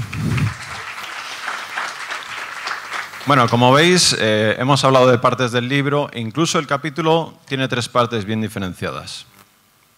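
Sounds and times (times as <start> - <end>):
audience applause: 0.0 - 4.0
speech: 3.3 - 9.4.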